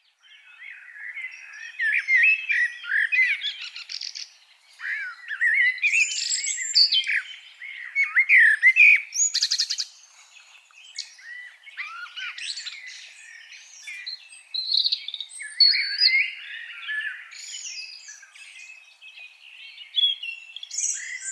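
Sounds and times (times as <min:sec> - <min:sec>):
Eurasian blackbird singing: 0:00.0 - 0:21.2.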